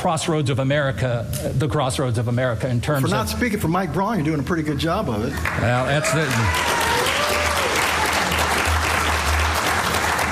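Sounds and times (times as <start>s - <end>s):
speech: 0.0s - 6.8s
audience applause: 5.4s - 10.3s.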